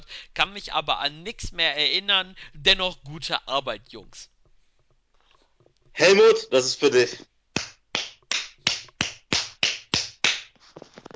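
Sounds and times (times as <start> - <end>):
speech: 0.3 - 4.3, 6.0 - 7.3
hand clap: 7.6 - 10.7.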